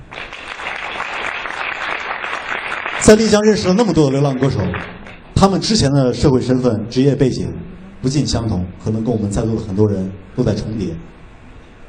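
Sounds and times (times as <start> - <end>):
audience applause: 0.0 - 5.2
speech: 3.1 - 11.2.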